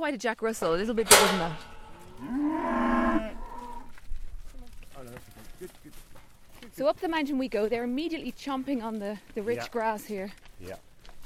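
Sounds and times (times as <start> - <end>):
speech: 0.0 - 2.8, 6.8 - 10.9
calf mooing: 1.2 - 3.9.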